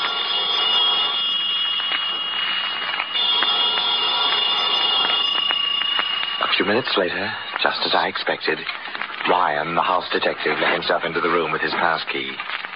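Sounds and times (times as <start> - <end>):
telephone ringing: 0.0 - 8.2
speech: 6.7 - 12.6.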